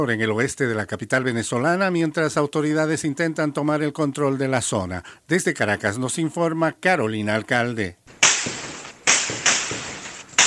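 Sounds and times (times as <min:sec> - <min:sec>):
speech: 0:00.0 - 0:08.3
bursts of gunfire: 0:08.1 - 0:10.4.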